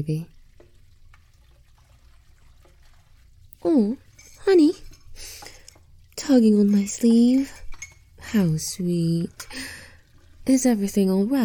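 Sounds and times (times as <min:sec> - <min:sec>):
speech: 0:00.0 - 0:00.4, 0:03.6 - 0:05.4, 0:06.2 - 0:07.6, 0:08.3 - 0:09.8, 0:10.5 - 0:11.4
water running from a tap: 0:00.0 - 0:11.4
dishes clinking: 0:04.0 - 0:05.8, 0:06.6 - 0:08.2.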